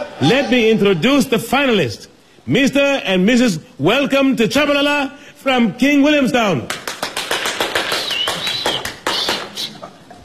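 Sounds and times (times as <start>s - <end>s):
speech: 0.2s - 6.8s
audience clapping hands: 6.6s - 9.8s.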